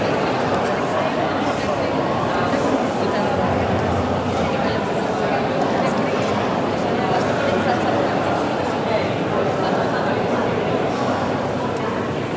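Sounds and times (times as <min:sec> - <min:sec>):
crowd walla in a mall interior: 0:00.0 - 0:12.3.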